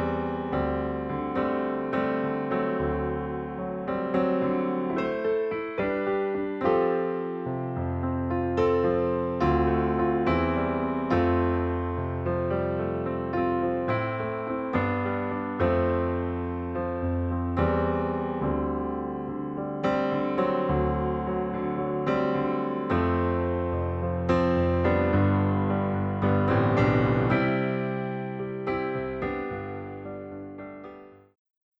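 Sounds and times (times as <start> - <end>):
Yamaha C1 acoustic piano: 0.0 - 31.4.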